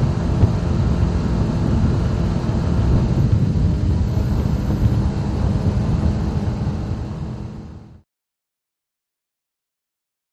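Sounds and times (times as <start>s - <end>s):
offshore powerboat racing: 0.0s - 8.0s.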